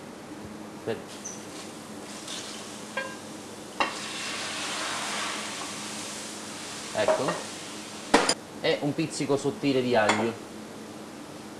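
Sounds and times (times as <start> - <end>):
speech: 0.8 - 1.3, 7.0 - 7.5, 8.6 - 10.5
sizzling in a pan seasoned with wholegrain salt and chili: 1.1 - 8.4
small ladle of water hitting a sizzling pan: 2.0 - 8.4.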